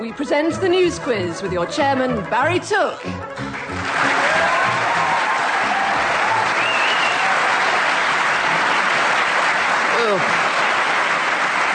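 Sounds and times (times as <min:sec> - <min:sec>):
speech: 0:00.1 - 0:04.5
audience applause: 0:03.2 - 0:11.7.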